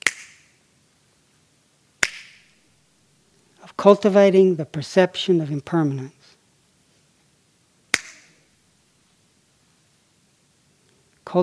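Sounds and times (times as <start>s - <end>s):
finger snaps during a meditation retreat at Spirit Rock: 0.0s - 0.6s, 2.0s - 2.5s, 7.9s - 8.4s
speech: 3.7s - 6.2s, 11.3s - 11.4s.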